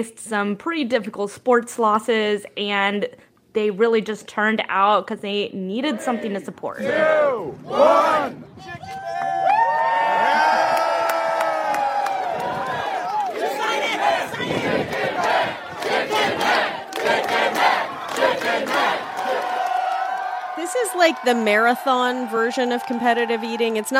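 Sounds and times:
speech: 0:00.0 - 0:09.0, 0:20.7 - 0:23.9
large crowd cheering and whooping: 0:07.0 - 0:15.8, 0:17.8 - 0:23.9
clapping: 0:10.6 - 0:13.5, 0:14.9 - 0:21.4, 0:22.5 - 0:23.9.

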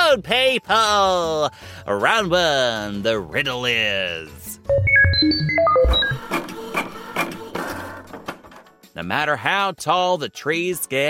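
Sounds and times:
speech: 0:00.1 - 0:07.4, 0:09.0 - 0:11.0
radio station riddle machine electronic beeps: 0:04.7 - 0:06.4
riddle machine rattling mechanical clacks and whirs: 0:05.9 - 0:08.7.

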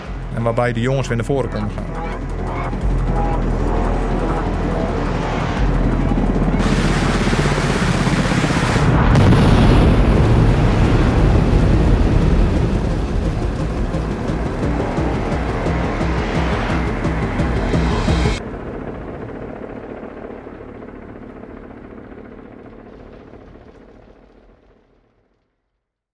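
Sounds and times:
speech: 0:00.4 - 0:03.6
Apache helicopter missile strike on building: 0:01.6 - 0:21.0.

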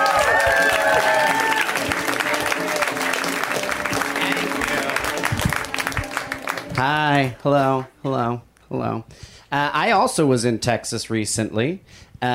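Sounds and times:
audience applause and cheering welcoming a comedian: 0:00.0 - 0:08.0
speech: 0:06.8 - 0:12.3.

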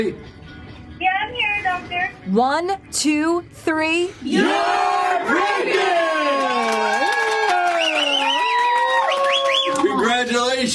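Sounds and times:
speech: 0:00.0 - 0:00.4, 0:01.0 - 0:06.0, 0:10.4 - 0:10.7
screams of joy at pregnancy news: 0:06.0 - 0:10.0.

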